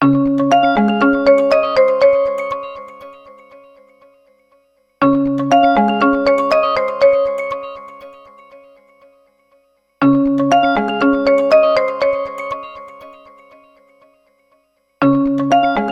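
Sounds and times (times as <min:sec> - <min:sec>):
marimba: 0:00.0 - 0:03.7, 0:05.0 - 0:08.8, 0:10.0 - 0:13.7.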